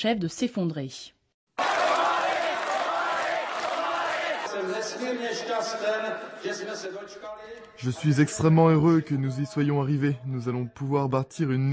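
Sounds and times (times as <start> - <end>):
speech: 0.0 - 1.2, 4.6 - 11.7
crowd chanting a name in Prague: 1.6 - 4.8.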